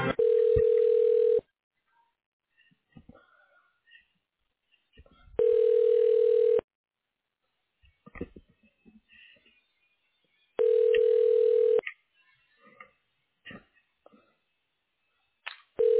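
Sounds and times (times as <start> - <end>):
telephone ringback tones during a call transfer to an extension: 0.2 - 1.4, 5.4 - 6.7, 10.6 - 11.8.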